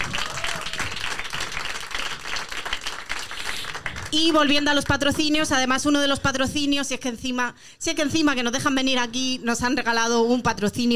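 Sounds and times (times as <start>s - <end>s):
audience applause: 0.0s - 4.2s
speech: 4.1s - 10.9s.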